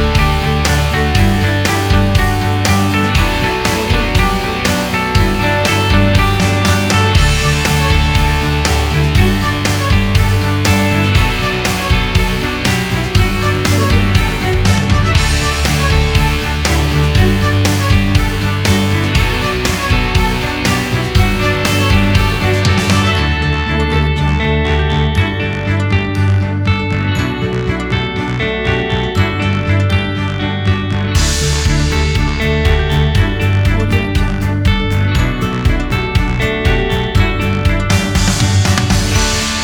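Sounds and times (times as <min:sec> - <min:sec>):
corporate background music: 0:00.0 - 0:39.6.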